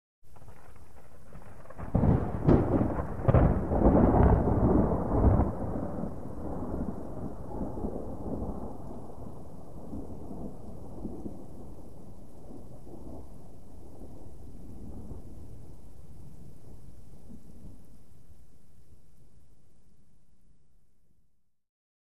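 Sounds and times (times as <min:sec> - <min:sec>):
medium distant thunder: 0:01.3 - 0:17.9.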